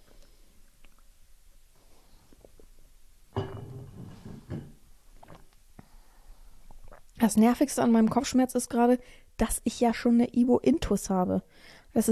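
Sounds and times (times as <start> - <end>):
person sipping and swallowing water: 5.2 - 5.6, 6.7 - 7.2
speech: 7.2 - 12.1.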